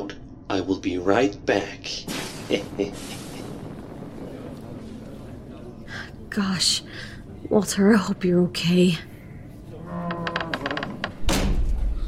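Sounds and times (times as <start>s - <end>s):
speech: 0.6s - 3.2s, 6.4s - 9.1s
door shutting: 10.1s - 11.9s.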